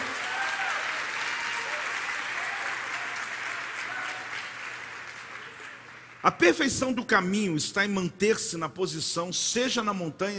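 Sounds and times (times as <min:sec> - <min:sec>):
loud audience applause: 0:00.0 - 0:06.4
speech: 0:06.2 - 0:10.3.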